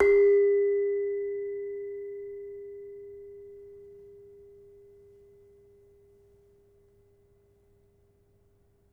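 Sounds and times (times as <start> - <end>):
demung gamelan metallophone played softly: 0.0 - 5.8.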